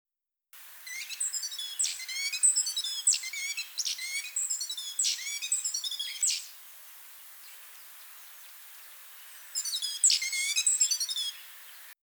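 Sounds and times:
great tit calling: 0.6 - 12.0.

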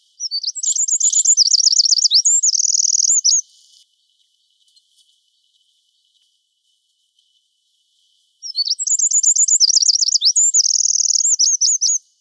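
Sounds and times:
Eurasian wren singing: 0.2 - 3.4, 8.5 - 12.1.

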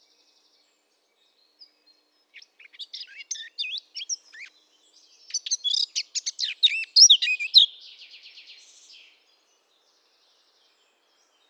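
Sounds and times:
Eurasian blackcap song: 2.4 - 4.5, 5.3 - 7.7.

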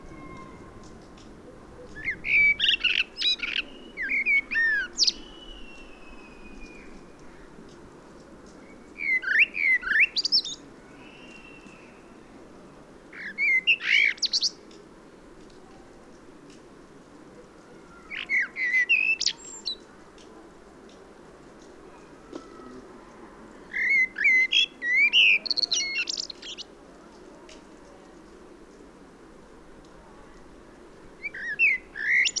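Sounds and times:
faint drawn-out tone: 0.0 - 1.0
Common blackbird song: 1.8 - 7.6, 8.4 - 12.4, 13.1 - 14.7, 17.7 - 19.9, 23.6 - 27.2, 31.2 - 32.3.

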